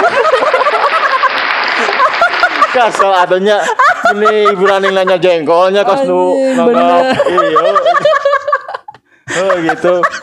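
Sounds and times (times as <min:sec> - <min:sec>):
hand clapping: 0:00.0 - 0:03.2
people chuckling: 0:00.0 - 0:05.4, 0:06.8 - 0:10.2
speech: 0:02.8 - 0:08.1, 0:09.4 - 0:10.2.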